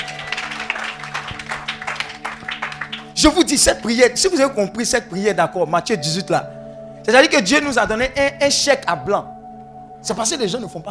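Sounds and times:
congregation clapping at a church service: 0.0s - 3.6s
held low musical tone: 0.0s - 10.8s
speech: 3.2s - 9.4s, 10.0s - 10.8s.

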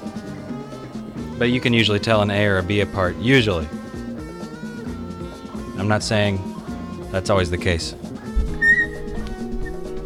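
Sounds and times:
speech: 1.4s - 3.8s, 5.8s - 6.5s, 7.1s - 8.1s
squeaky microphone mount being moved: 8.4s - 10.0s.

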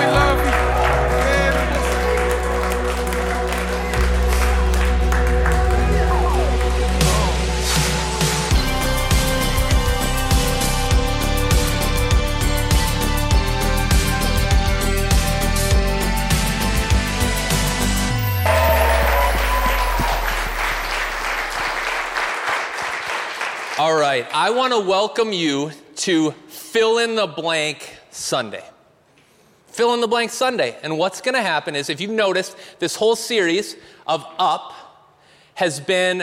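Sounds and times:
church congregation applauding as a shout of praise at a morning service: 0.0s - 9.0s, 18.2s - 24.4s
music: 0.0s - 22.8s
speech: 24.7s - 28.7s, 29.8s - 34.8s, 35.6s - 36.2s.

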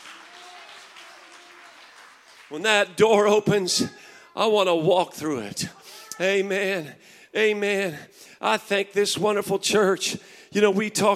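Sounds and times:
audience clapping hands in praise: 0.0s - 4.0s
speech: 2.5s - 11.1s.

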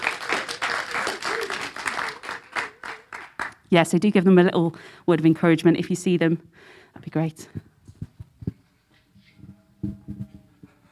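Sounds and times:
audience applauding: 0.0s - 3.6s
speech: 3.7s - 7.7s.

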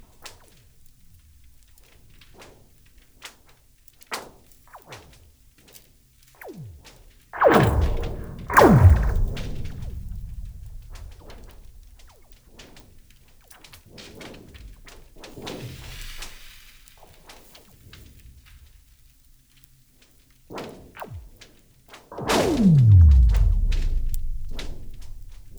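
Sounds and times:
big booming twanging cracks of frozen lake ice: 7.4s - 12.1s, 22.2s - 25.5s.

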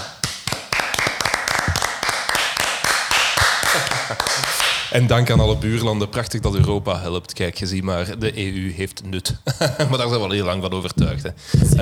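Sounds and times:
applause from a small group: 0.0s - 4.9s
laughter: 3.4s - 5.1s, 9.3s - 10.6s
speech: 4.1s - 11.8s.

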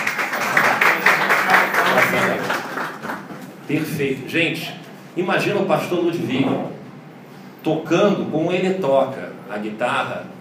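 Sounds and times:
audience applause: 0.0s - 3.4s
speech: 2.0s - 2.6s, 3.7s - 6.7s, 7.6s - 10.3s.

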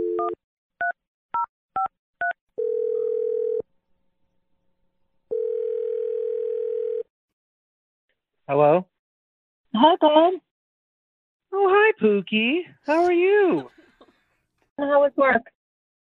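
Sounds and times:
telephone dial tone: 2.6s - 3.6s, 5.3s - 7.1s
speech: 8.5s - 8.9s, 9.8s - 10.5s, 11.5s - 13.8s, 14.8s - 15.6s.

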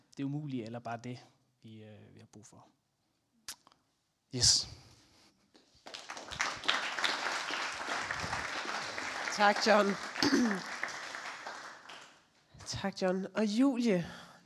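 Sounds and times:
speech: 0.2s - 2.8s, 4.3s - 4.9s, 9.4s - 10.7s, 12.7s - 14.4s
audience clapping: 5.8s - 12.3s.

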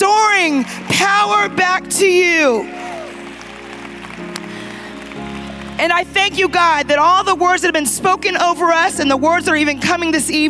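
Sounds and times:
crowd clapping: 0.0s - 6.7s
speech: 5.8s - 10.4s.

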